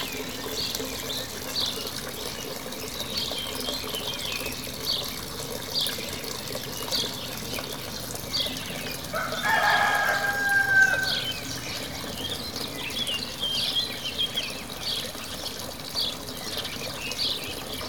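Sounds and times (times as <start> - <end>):
running water: 0.0 - 17.8
small birds chirping: 0.0 - 17.8
rooster crowing: 9.1 - 11.5.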